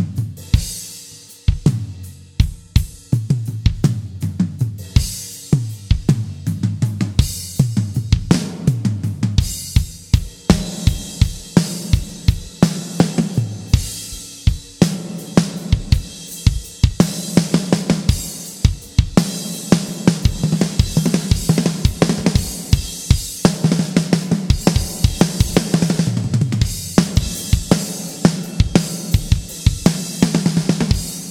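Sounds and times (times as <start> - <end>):
drums: 0.0 - 31.2.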